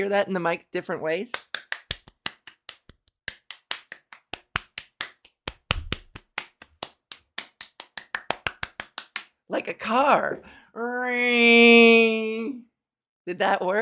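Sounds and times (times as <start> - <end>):
speech: 0.0 - 1.5, 9.6 - 12.7, 13.3 - 13.7
small group clapping: 1.3 - 9.4.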